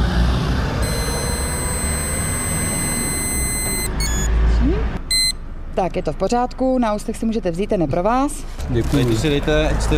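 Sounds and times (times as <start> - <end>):
breathalyzer test tone during exhalation: 0.8 - 4.3, 5.1 - 5.4
short beeps: 0.8 - 4.4, 5.1 - 5.4
speech: 5.8 - 9.9.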